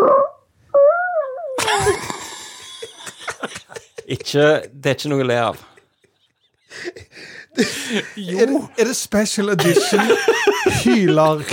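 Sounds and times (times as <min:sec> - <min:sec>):
fart recording sent in by listener: 0:00.0 - 0:01.6
laughter: 0:01.6 - 0:08.7, 0:09.4 - 0:11.5
speech: 0:04.1 - 0:05.7, 0:07.6 - 0:11.5.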